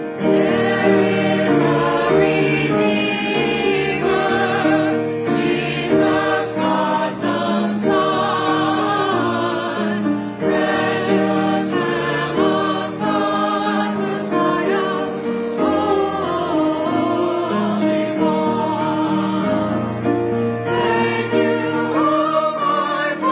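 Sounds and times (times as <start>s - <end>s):
choir singing: 0.2s - 23.3s.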